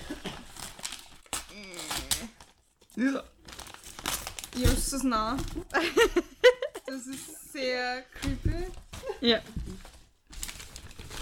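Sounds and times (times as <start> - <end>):
wrapping paper crinkling and tearing as a gift is unwrapped: 0.0 - 6.1, 8.6 - 11.2
speech: 3.0 - 3.4, 4.5 - 9.6.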